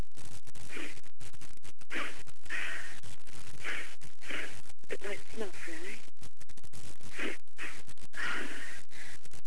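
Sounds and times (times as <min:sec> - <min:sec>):
sniffing pepper through the nose: 0:00.7 - 0:01.0, 0:01.9 - 0:03.0, 0:03.6 - 0:04.6, 0:07.1 - 0:09.2.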